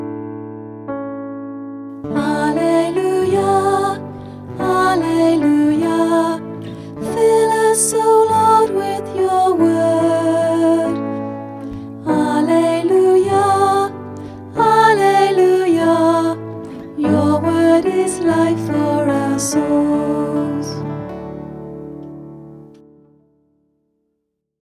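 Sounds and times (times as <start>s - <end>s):
gospel acclamation singing: 2.1s - 21.7s.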